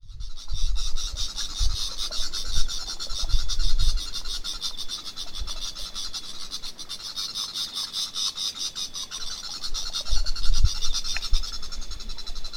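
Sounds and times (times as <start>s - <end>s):
bird calls in rapid pulsed bursts: 0.0s - 12.5s.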